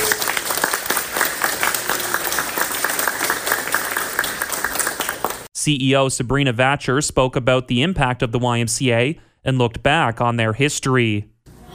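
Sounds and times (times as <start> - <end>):
crowd applause: 0.0 - 5.5
speech: 5.6 - 11.7.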